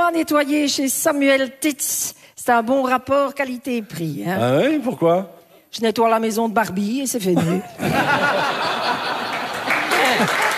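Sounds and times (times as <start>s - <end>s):
speech: 0.1s - 9.2s, 10.2s - 10.5s
laughter: 7.4s - 10.5s
crowd applauding: 8.6s - 10.5s.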